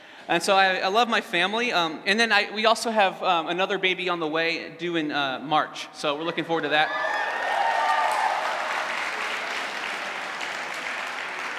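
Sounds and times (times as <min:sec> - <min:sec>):
speech: 0:00.3 - 0:07.3
audience cheering and applause: 0:06.6 - 0:11.5
high whoops: 0:06.8 - 0:09.9.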